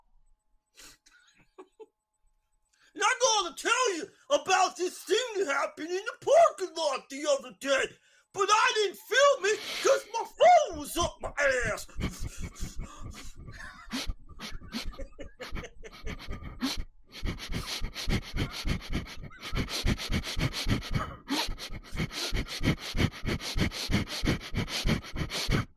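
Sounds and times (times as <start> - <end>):
speech: 3.6 - 12.2
breathing into the microphone: 8.0 - 8.3, 11.8 - 25.7
laughter: 8.9 - 16.7, 18.4 - 19.9.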